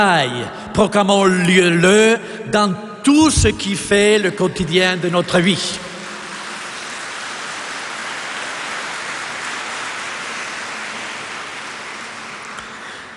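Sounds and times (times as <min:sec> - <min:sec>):
speech: 0:00.0 - 0:05.9
audience applauding: 0:05.0 - 0:13.1.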